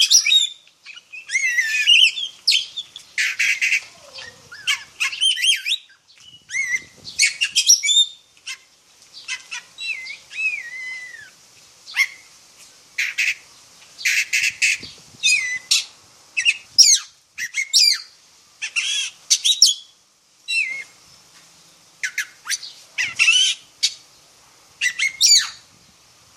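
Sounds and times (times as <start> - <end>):
oriental magpie-robin song, black form: 0.0 - 11.3, 14.0 - 19.9, 20.5 - 20.9, 22.0 - 24.1, 24.8 - 25.7.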